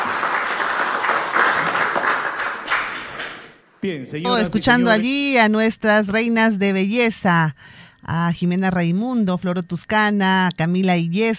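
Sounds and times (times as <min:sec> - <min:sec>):
audience applause: 0:00.0 - 0:03.6
speech: 0:03.8 - 0:11.3.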